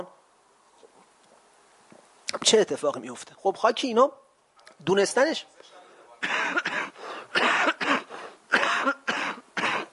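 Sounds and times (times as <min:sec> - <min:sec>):
speech: 0:02.4 - 0:04.2, 0:04.8 - 0:05.5
speaker coughing during a lecture session: 0:06.2 - 0:09.9.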